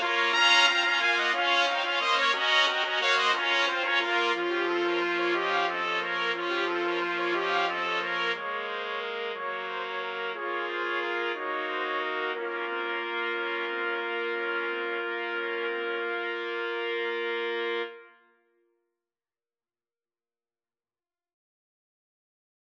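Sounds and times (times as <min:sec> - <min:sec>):
trumpets playing: 0:00.0 - 0:18.1.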